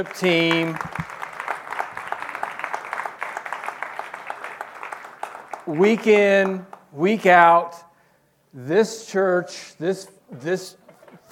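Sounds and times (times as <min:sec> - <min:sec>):
speech: 0:00.0 - 0:01.1, 0:05.7 - 0:07.9, 0:08.5 - 0:11.3
audience applause: 0:00.0 - 0:06.6.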